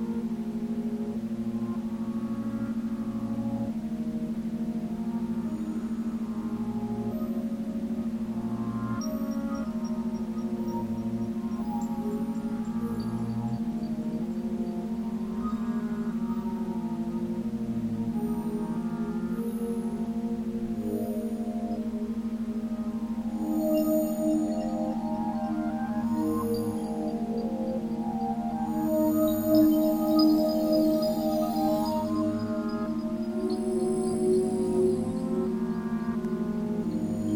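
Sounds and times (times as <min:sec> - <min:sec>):
pentatonic melody: 0:00.0 - 0:37.3.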